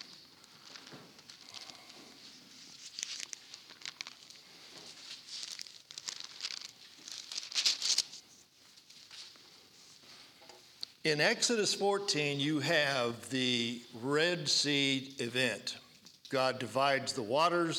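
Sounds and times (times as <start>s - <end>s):
thin Bible pages being turned: 0.0s - 10.0s
speech: 11.1s - 17.7s.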